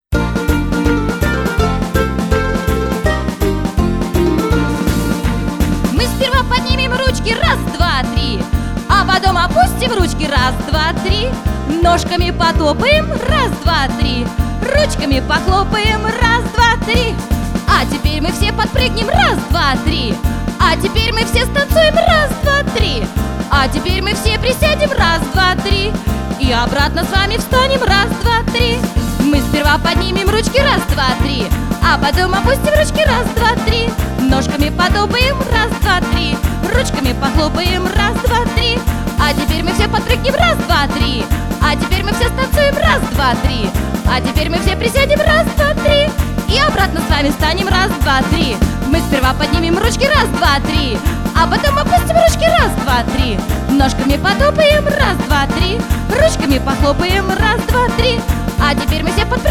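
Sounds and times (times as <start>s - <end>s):
music for a children's exercise break game: 0.0s - 59.4s.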